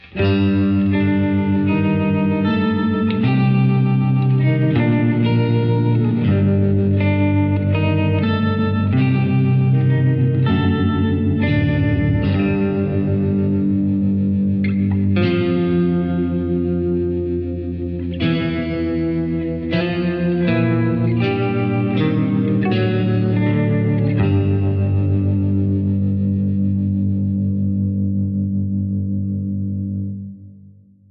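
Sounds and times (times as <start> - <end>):
guitar intro: 0.0 - 30.9.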